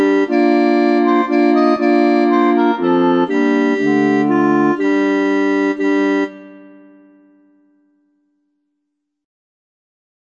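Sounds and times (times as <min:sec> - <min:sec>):
renaissance dance tune: 0:00.0 - 0:07.4.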